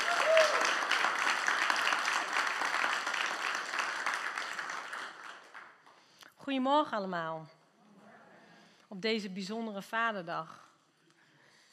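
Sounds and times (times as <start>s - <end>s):
high vocal whoop: 0.0s - 0.7s
audience clapping: 0.0s - 6.1s
speech: 6.5s - 7.6s, 8.9s - 10.6s.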